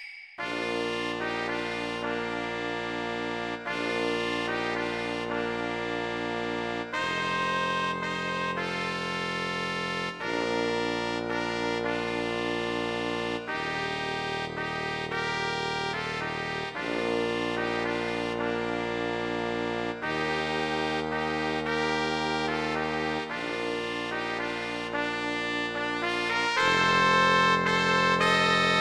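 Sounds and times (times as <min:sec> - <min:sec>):
trombone: 0:00.4 - 0:28.7.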